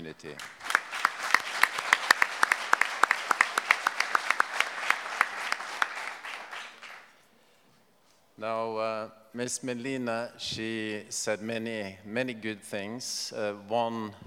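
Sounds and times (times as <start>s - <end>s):
speech: 0.1s - 0.6s, 8.4s - 14.2s
audience applause: 0.4s - 7.2s.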